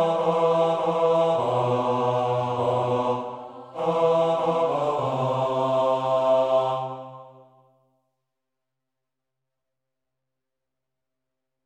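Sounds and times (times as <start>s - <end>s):
tenor singing: 0.0s - 7.4s.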